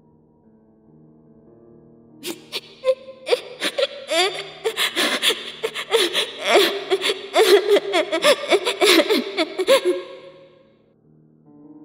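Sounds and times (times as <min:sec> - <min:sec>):
soft sobbing cry: 0:02.2 - 0:10.5.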